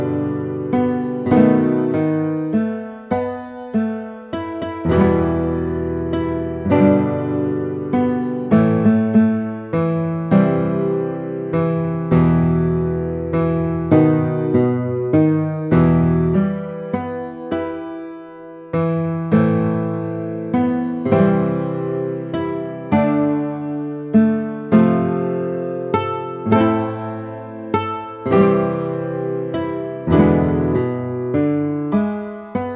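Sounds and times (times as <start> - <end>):
guitar playing: 0.0 - 32.7.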